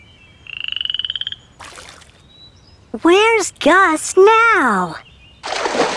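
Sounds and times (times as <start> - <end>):
frog croaking in a pond: 0.4 - 2.2
speech: 2.9 - 5.1.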